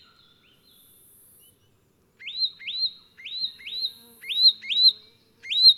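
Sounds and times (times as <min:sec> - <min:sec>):
Myiagra rubecula leaden flycatcher calling: 0:02.2 - 0:05.7.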